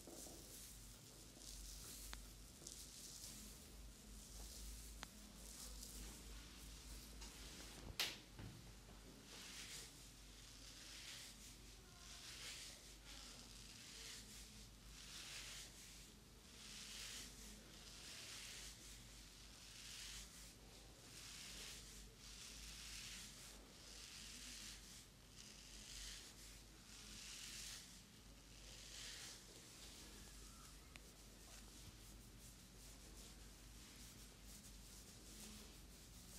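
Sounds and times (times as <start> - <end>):
head, back and neck massage rubbing strokes: 0.0 - 8.0, 9.2 - 36.3.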